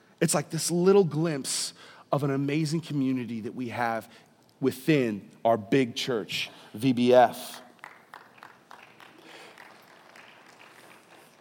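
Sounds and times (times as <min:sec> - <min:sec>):
speech: 0:00.2 - 0:07.6
audience clapping: 0:07.7 - 0:11.3.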